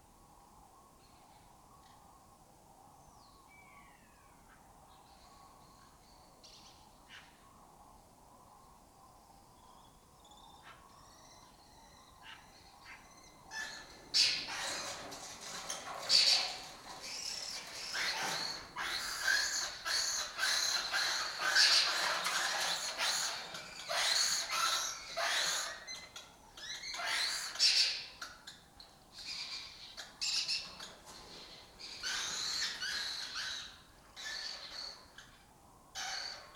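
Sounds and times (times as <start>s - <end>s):
lesser kestrels harsh chattering: 12.3s - 28.2s, 31.8s - 35.3s.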